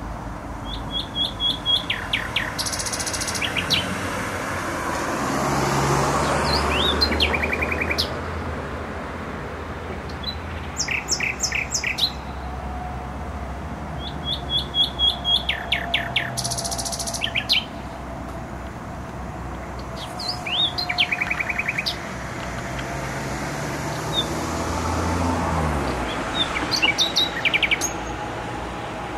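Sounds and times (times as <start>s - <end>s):
heavy traffic rumble: 0.0s - 29.1s
nightingale song: 0.6s - 4.0s, 6.1s - 8.2s, 9.9s - 12.9s, 13.9s - 18.1s, 19.5s - 28.3s.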